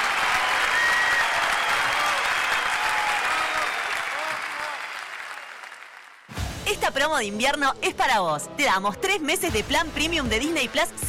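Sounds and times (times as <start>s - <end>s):
crowd applause: 0.0s - 6.3s
speech: 6.9s - 11.0s.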